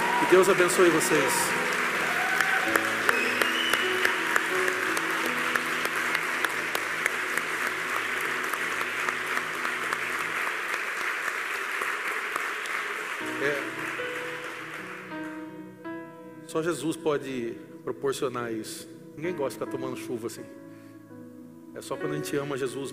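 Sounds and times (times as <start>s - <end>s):
church audience applauding in a large room: 0.0s - 15.6s
speech: 0.3s - 1.8s, 16.6s - 20.6s, 21.8s - 22.9s.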